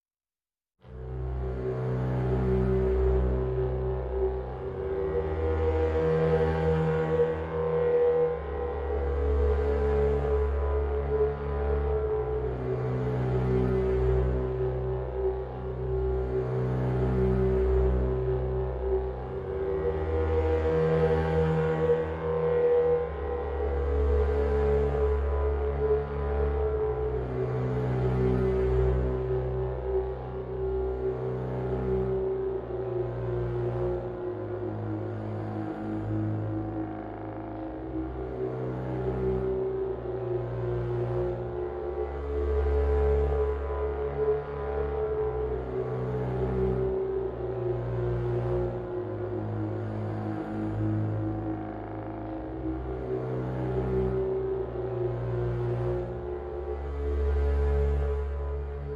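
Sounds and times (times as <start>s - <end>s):
murder mystery bass mix: 0.8s - 58.9s.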